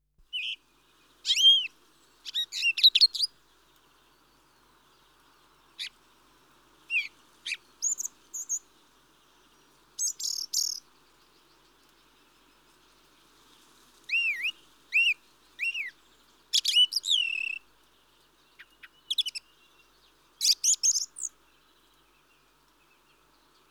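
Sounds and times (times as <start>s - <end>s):
mistle thrush calls: 0.3s - 3.3s, 6.9s - 8.7s, 10.0s - 10.9s, 14.1s - 17.7s, 18.5s - 23.2s.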